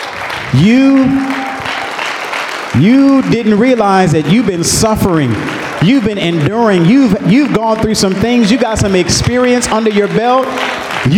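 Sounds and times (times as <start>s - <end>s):
audience clapping hands: 0.0s - 11.1s
speech: 0.5s - 1.4s, 2.8s - 11.1s
person cheering or whooping: 0.5s - 11.1s.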